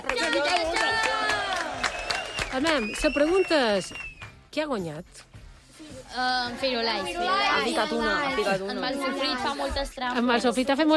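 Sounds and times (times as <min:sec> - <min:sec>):
excited cheering and shouts: 0:00.0 - 0:03.7
crowd applauding: 0:00.0 - 0:04.4
speech: 0:02.6 - 0:05.3, 0:06.1 - 0:10.9.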